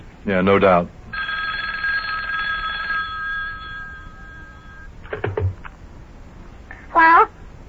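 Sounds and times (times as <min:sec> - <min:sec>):
speech: 0:00.2 - 0:01.0
telephone bell ringing: 0:01.1 - 0:05.0.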